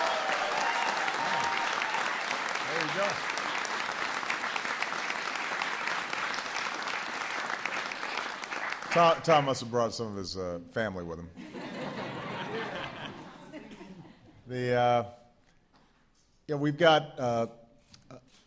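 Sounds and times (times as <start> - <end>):
audience applause: 0.0 - 9.4
speech: 3.0 - 3.3, 8.9 - 11.5, 14.5 - 15.2, 16.5 - 17.6
laughter: 11.4 - 14.4.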